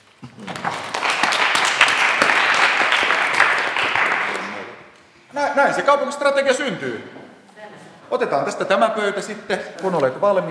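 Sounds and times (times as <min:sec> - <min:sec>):
audience applause: 0:00.2 - 0:04.8
speech: 0:05.6 - 0:07.2, 0:08.1 - 0:10.4.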